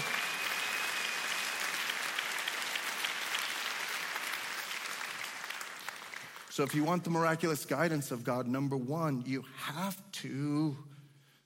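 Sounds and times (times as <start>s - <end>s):
audience applause: 0.0s - 7.0s
speech: 6.6s - 10.9s.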